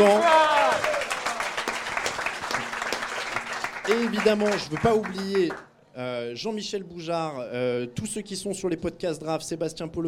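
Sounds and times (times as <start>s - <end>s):
audience applause: 0.0s - 5.6s
speech: 3.9s - 10.0s.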